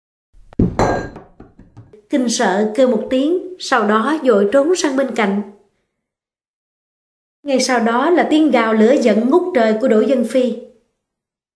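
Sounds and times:
sharp bang in a hospital room: 0:00.4 - 0:01.9
speech: 0:02.1 - 0:05.6, 0:07.5 - 0:10.7.

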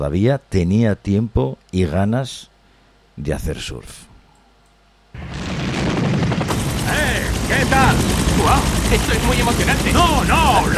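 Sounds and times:
speech: 0:00.0 - 0:02.5, 0:03.2 - 0:04.1, 0:07.7 - 0:10.7
bombs exploding in a Vietnam War film scene: 0:05.2 - 0:10.7.

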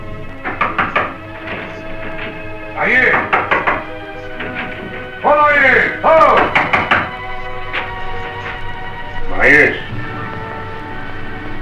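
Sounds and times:
knocks on a wooden bedroom door: 0:00.4 - 0:05.2, 0:06.3 - 0:07.3
speech: 0:02.8 - 0:03.3, 0:05.6 - 0:06.6.

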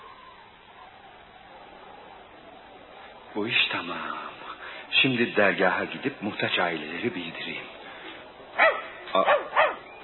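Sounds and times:
speech: 0:03.4 - 0:07.8, 0:09.2 - 0:09.4
dog barking: 0:08.6 - 0:09.9.

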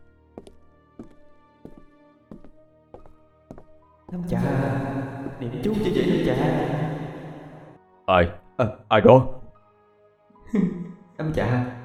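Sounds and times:
heavy footsteps: 0:00.0 - 0:05.9
speech: 0:04.1 - 0:06.8, 0:08.1 - 0:09.4, 0:10.5 - 0:11.8.

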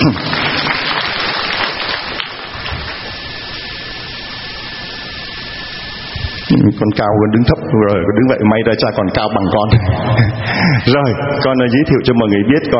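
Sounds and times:
speech: 0:00.0 - 0:00.3, 0:06.8 - 0:12.7
audience applause: 0:00.0 - 0:03.6.

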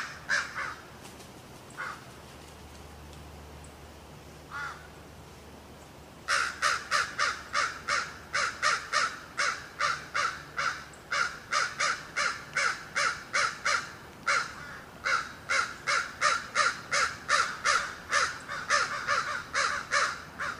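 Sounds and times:
crows cawing: 0:00.0 - 0:00.9, 0:01.8 - 0:02.1, 0:04.5 - 0:05.0, 0:06.3 - 0:20.5.

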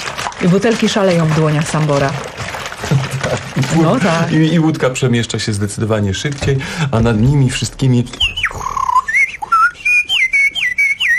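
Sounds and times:
speech: 0:00.4 - 0:08.6
person whistling birdsong imitation: 0:08.1 - 0:11.1.

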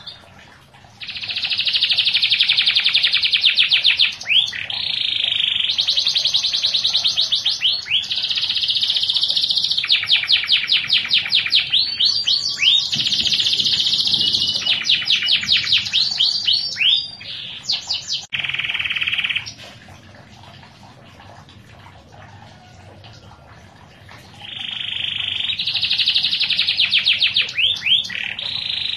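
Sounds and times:
canary singing with buzzy rolling trill: 0:01.0 - 0:19.6, 0:24.4 - 0:28.9.

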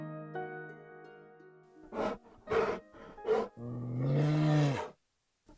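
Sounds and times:
Gobi bear roaring: 0:01.9 - 0:04.9.

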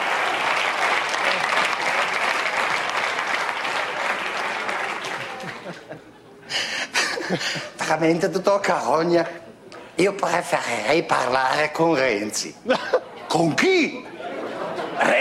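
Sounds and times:
studio audience applause: 0:00.0 - 0:05.8
laughter: 0:04.0 - 0:08.0, 0:12.6 - 0:15.1
speech: 0:07.3 - 0:09.4, 0:10.0 - 0:14.1.

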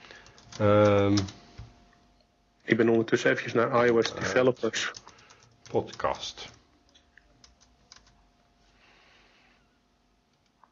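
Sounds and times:
typing on a computer keyboard entering a message in an online forum: 0:00.0 - 0:01.4, 0:03.8 - 0:08.2
speech: 0:00.6 - 0:01.4, 0:02.7 - 0:05.0, 0:05.7 - 0:06.6.

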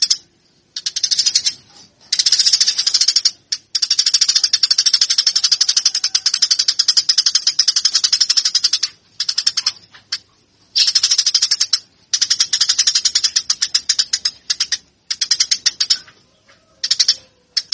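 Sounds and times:
Eurasian tree sparrow chirping: 0:00.0 - 0:17.7.

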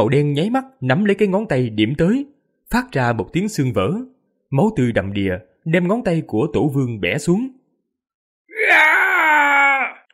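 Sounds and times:
speech: 0:00.0 - 0:07.6
agonized scream of pain: 0:08.5 - 0:10.1.

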